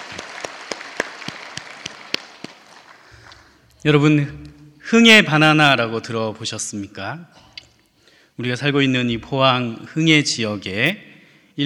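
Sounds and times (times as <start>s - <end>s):
audience applause: 0.0s - 3.1s
speech: 3.8s - 7.5s, 8.4s - 11.6s.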